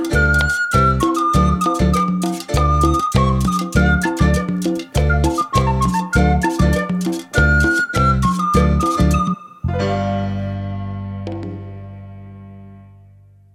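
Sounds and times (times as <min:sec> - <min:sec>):
flute playing first voice part: 0:00.0 - 0:10.2.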